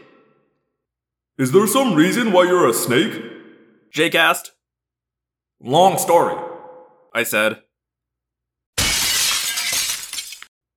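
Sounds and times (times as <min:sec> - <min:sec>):
speech: 0:01.4 - 0:03.3, 0:03.9 - 0:04.6, 0:05.6 - 0:06.5, 0:07.1 - 0:07.6
window glass shattering: 0:08.8 - 0:10.5.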